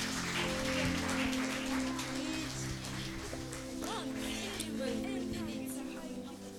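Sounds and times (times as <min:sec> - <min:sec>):
audience applause: 0:00.0 - 0:04.5
voices: 0:00.0 - 0:06.5.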